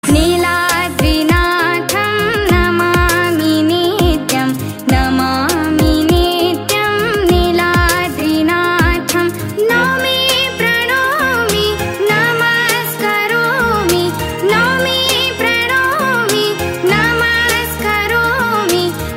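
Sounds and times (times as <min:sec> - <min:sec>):
Odia bhajan ringtone: 0:00.1 - 0:19.1.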